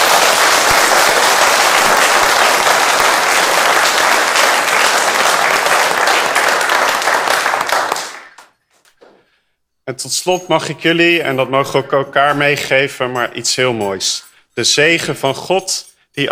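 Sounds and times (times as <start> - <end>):
audience applause: 0.0 - 8.5
speech: 9.9 - 16.3.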